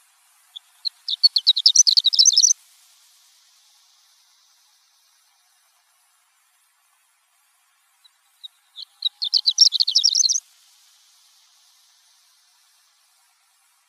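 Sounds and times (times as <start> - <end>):
horned lark chirping and twittering: 0.5 - 2.6, 8.0 - 10.4.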